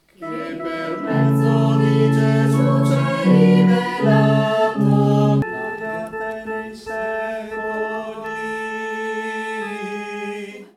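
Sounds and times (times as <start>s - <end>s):
tenors singing Eucharist Gloria: 0.2s - 10.7s.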